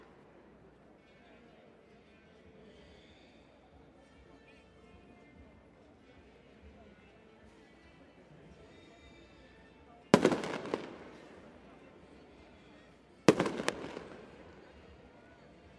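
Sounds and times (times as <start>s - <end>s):
firecrackers exploding at a procession: 10.2s - 11.9s, 13.3s - 14.7s.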